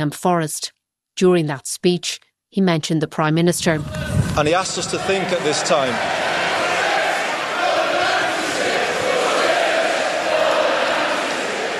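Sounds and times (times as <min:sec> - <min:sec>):
speech: 0:00.0 - 0:06.5
crowd chanting for justice: 0:03.6 - 0:11.7.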